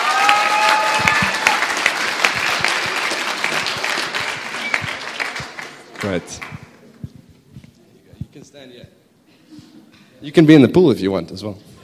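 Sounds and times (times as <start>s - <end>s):
whistles and cheers: 0.0s - 1.8s
crowd applauding: 0.0s - 6.8s
speech: 6.0s - 6.6s, 8.6s - 9.0s, 10.2s - 11.7s.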